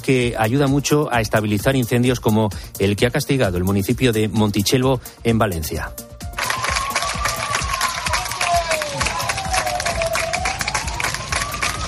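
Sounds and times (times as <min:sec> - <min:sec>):
speech: 0:00.0 - 0:06.1
crowd applauding emergency military unit: 0:06.4 - 0:11.8.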